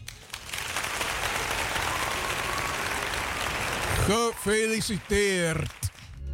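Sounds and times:
applause for a winner: 0.0s - 6.2s
speech: 4.1s - 5.8s.

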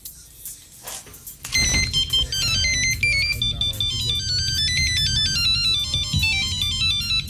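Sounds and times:
radio station jingle: 1.5s - 7.2s.

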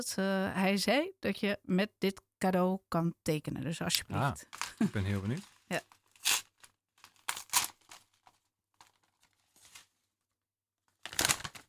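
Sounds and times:
speech: 0.0s - 6.0s
paper crinkling as a gift of mustard cress for drawing is unwrapped: 4.5s - 10.3s, 10.9s - 11.6s.

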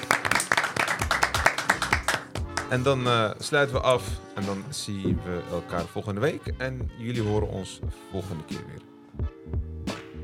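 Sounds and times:
people clapping: 0.0s - 2.9s
speech: 2.7s - 9.9s.

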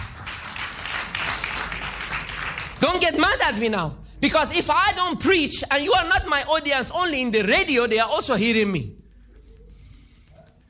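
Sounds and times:
applause: 0.0s - 2.8s
speech: 2.8s - 9.0s.

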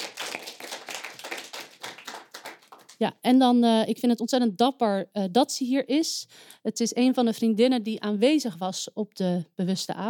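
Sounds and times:
applause for a guest on stage: 0.0s - 3.0s
speech: 3.0s - 10.0s.

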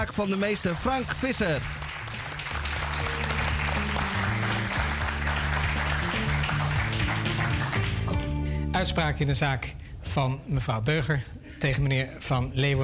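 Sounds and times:
speech: 0.0s - 2.2s, 8.8s - 12.8s
audience applause: 0.8s - 8.3s.

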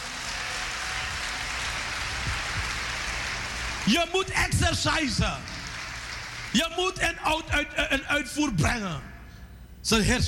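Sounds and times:
audience applause: 0.0s - 4.3s, 5.0s - 6.6s
speech: 3.9s - 5.6s, 6.6s - 9.1s, 9.8s - 10.2s.

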